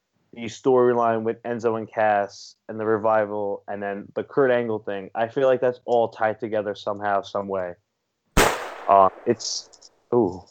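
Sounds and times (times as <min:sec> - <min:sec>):
speech: 0:00.4 - 0:07.8, 0:08.9 - 0:10.4
gunshot sound effect: 0:08.4 - 0:09.6.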